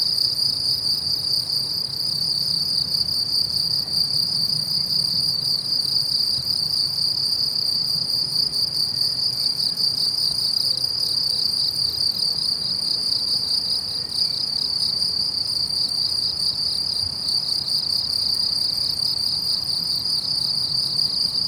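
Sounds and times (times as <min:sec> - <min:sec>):
cricket chirping before April: 0:00.0 - 0:21.4.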